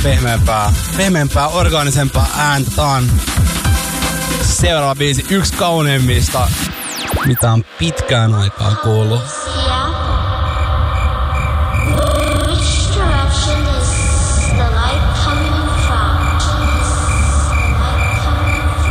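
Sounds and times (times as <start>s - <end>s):
speech: 0.0s - 9.8s
frogs croaking: 10.4s - 13.1s, 13.9s - 14.6s, 15.2s - 18.9s.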